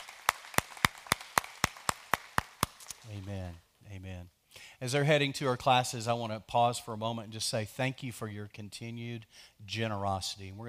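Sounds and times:
audience clapping: 0:00.0 - 0:03.5
speech: 0:03.0 - 0:10.6.

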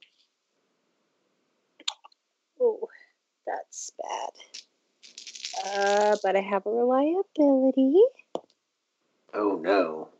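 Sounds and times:
speech: 0:03.7 - 0:04.6, 0:05.6 - 0:08.2, 0:09.4 - 0:10.1
four dice rolled in a tabletop game: 0:04.4 - 0:06.3.

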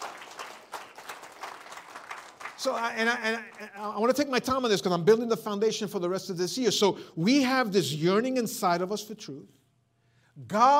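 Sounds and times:
audience clapping: 0:00.0 - 0:04.2
speech: 0:02.6 - 0:09.6, 0:10.4 - 0:10.7.

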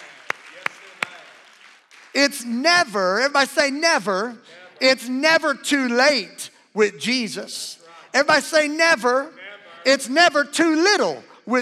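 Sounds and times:
audience clapping hands: 0:00.0 - 0:02.5
speech: 0:02.2 - 0:11.5.

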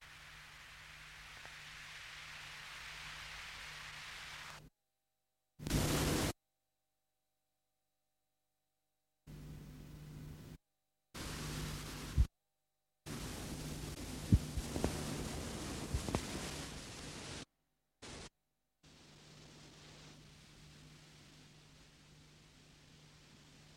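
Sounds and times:
experimental electronic tape loop hissing noise: 0:00.0 - 0:04.7, 0:05.6 - 0:06.4, 0:11.2 - 0:12.3, 0:13.1 - 0:18.3, 0:18.9 - 0:23.7.

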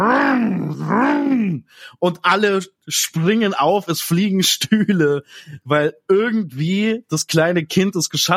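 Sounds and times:
voice imitating a racing car engine starting: 0:00.0 - 0:01.7
speech: 0:01.6 - 0:08.3.

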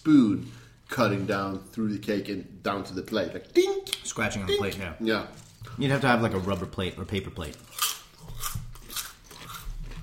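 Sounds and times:
speech: 0:00.0 - 0:07.8
crunching potato chips: 0:07.4 - 0:10.0.

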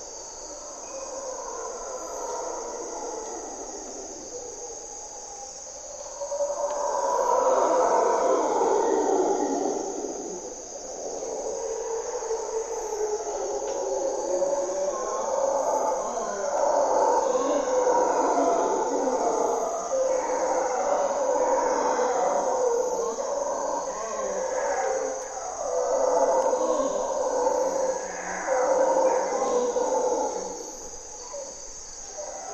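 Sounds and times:
insect chorus: 0:00.0 - 0:32.5
mantled howler monkeys roaring: 0:00.0 - 0:32.5.

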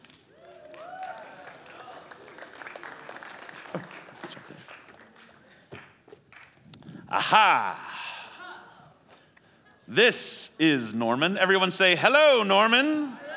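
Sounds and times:
audience applause: 0:00.0 - 0:06.5
speech: 0:03.8 - 0:04.8, 0:07.1 - 0:07.9, 0:09.9 - 0:13.2
laughter: 0:07.1 - 0:10.1, 0:12.8 - 0:13.3.

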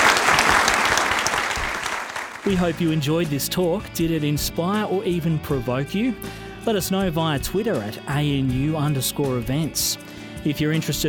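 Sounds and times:
audience applause: 0:00.0 - 0:02.9
speech: 0:02.4 - 0:11.0.

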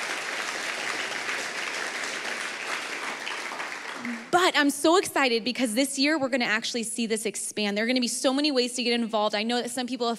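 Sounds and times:
audience clapping: 0:00.0 - 0:04.4
speech: 0:04.0 - 0:10.1.

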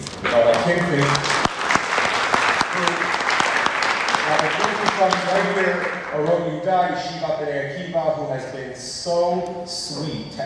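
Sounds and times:
audience applause: 0:00.0 - 0:06.7
speech: 0:00.3 - 0:01.4, 0:05.0 - 0:10.4
faint cheer: 0:00.3 - 0:06.4.

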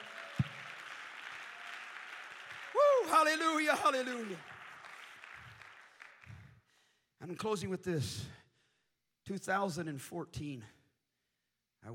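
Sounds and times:
audience clapping hands: 0:00.0 - 0:06.6
speech: 0:03.1 - 0:04.5, 0:07.2 - 0:08.4, 0:09.3 - 0:10.8.

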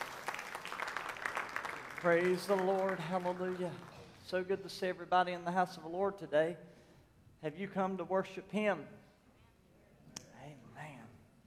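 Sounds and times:
audience hand clapping: 0:00.0 - 0:04.4
speech: 0:02.0 - 0:06.7, 0:07.4 - 0:09.1.

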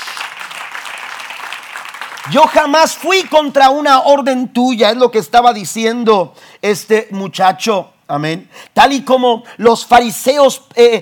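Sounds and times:
audience applauding: 0:00.0 - 0:02.8
speech: 0:02.3 - 0:11.0.

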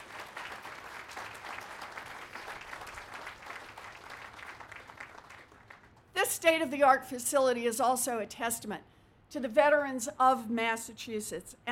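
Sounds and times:
audience applause: 0:00.0 - 0:05.9
speech: 0:06.3 - 0:11.7.

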